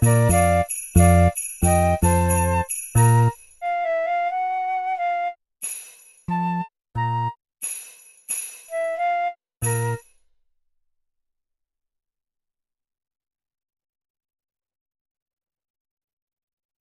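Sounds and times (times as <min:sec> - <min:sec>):
jazz arrangement of a Christmas tune: 0:00.0 - 0:10.0.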